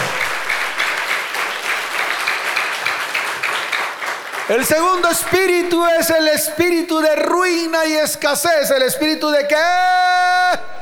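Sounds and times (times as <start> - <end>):
audience applause: 0.0 - 6.4
speech: 4.5 - 10.7.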